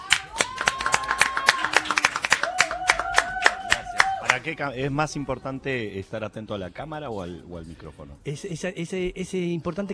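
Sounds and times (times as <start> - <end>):
person cheering: 0.0 - 4.4
audience applause: 0.0 - 4.5
speech: 4.3 - 9.9.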